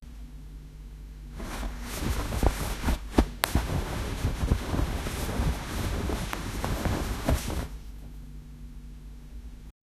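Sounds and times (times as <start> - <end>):
soft rubbing of sheets on a pillow: 1.3 - 8.0.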